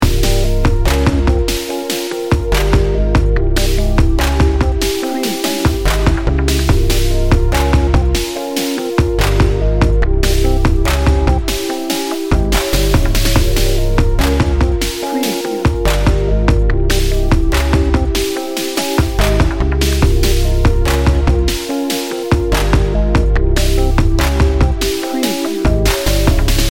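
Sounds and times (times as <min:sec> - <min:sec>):
sinister dark hip hop loop: 0:00.0 - 0:26.6.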